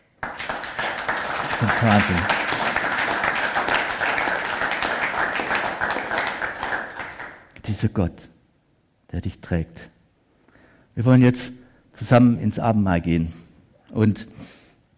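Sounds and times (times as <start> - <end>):
audience applause: 0.2 - 7.5
speech: 1.6 - 2.4, 7.7 - 8.3, 9.1 - 9.9, 11.0 - 14.3.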